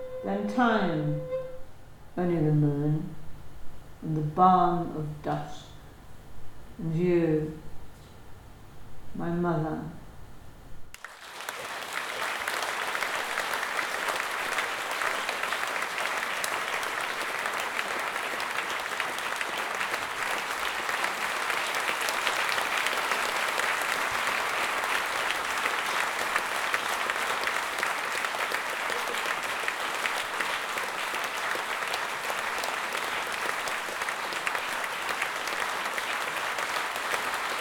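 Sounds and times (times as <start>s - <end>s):
speech: 0.2s - 1.3s, 2.2s - 3.2s, 4.0s - 5.7s, 6.8s - 7.7s, 9.2s - 10.0s
audience applause: 10.9s - 37.6s.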